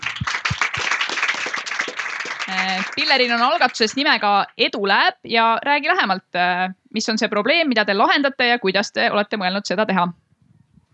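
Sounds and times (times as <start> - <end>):
audience applause: 0.0 - 4.5
speech: 2.6 - 10.2.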